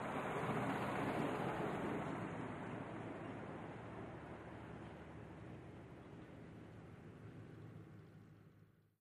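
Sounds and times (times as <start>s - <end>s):
antique Buick passing by at medium speed: 0.0s - 5.2s.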